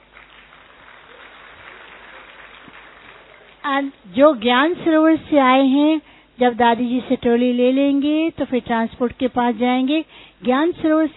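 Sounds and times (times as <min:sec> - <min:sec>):
audience applause: 0:00.0 - 0:03.7
speech: 0:03.6 - 0:11.1.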